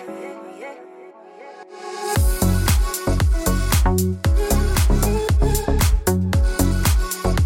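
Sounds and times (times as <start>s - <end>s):
ringtone: 2.2s - 7.4s.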